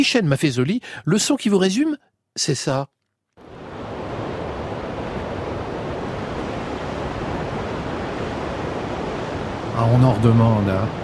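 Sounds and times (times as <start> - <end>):
speech: 0.0 - 3.0, 9.8 - 11.0
wind blowing through the mountains: 3.4 - 11.0.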